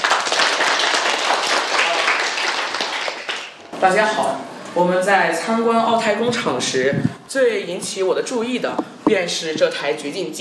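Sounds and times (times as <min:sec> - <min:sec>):
classroom applause: 0:00.0 - 0:03.7
speech: 0:03.8 - 0:10.3.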